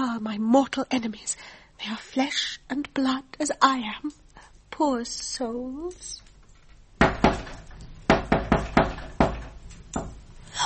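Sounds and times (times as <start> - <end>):
speech: 0.2 - 4.2, 4.8 - 6.3
knock on a door: 7.0 - 10.2.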